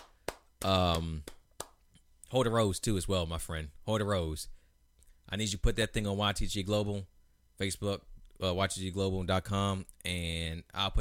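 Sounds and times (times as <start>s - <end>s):
hand claps: 0.0s - 1.9s
speech: 0.6s - 1.4s, 2.3s - 4.6s, 5.3s - 10.9s.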